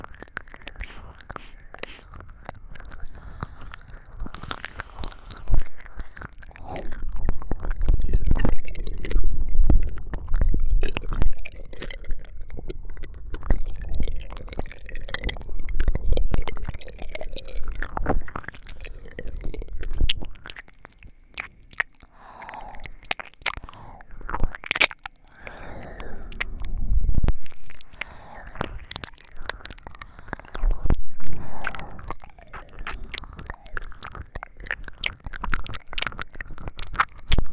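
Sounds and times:
ear licking in both ears: 0:00.0 - 0:37.5
sniffing near ears: 0:00.8 - 0:02.2, 0:04.2 - 0:05.4.

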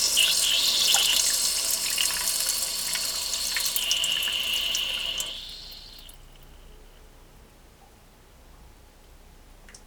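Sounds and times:
person urinating after drinking coffee: 0:00.0 - 0:06.5.

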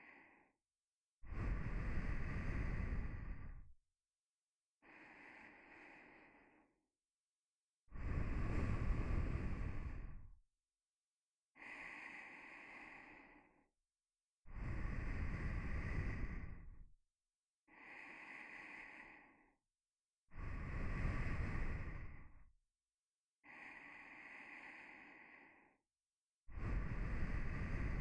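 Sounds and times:
nose breathing while lying beside: 0:01.3 - 0:03.7, 0:04.8 - 0:06.7, 0:08.0 - 0:10.3, 0:11.6 - 0:13.6, 0:14.5 - 0:16.8, 0:17.7 - 0:19.5, 0:20.3 - 0:22.3, 0:23.4 - 0:25.8, 0:26.5 - 0:28.0.

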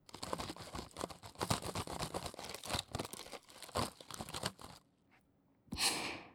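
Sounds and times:
chewing kohakuto crystal candy: 0:00.0 - 0:04.8.

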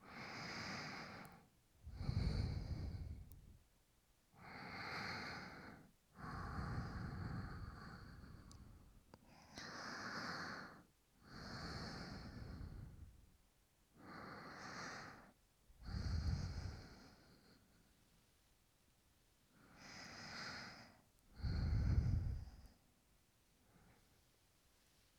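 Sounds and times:
person breathing in sleep: 0:00.0 - 0:03.6, 0:04.4 - 0:13.2, 0:14.0 - 0:17.9, 0:19.5 - 0:22.8.

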